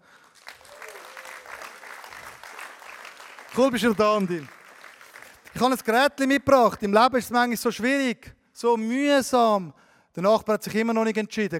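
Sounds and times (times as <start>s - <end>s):
audience applause: 0.0s - 5.7s
speech: 3.5s - 4.6s, 5.6s - 11.5s.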